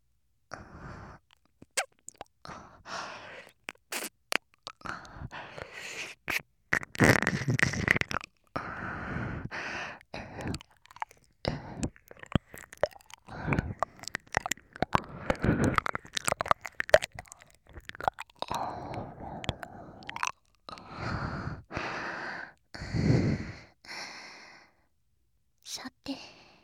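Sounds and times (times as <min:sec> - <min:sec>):
breathy mouth sounds: 0:00.5 - 0:24.7
wet ear licking and slurping: 0:00.6 - 0:21.8.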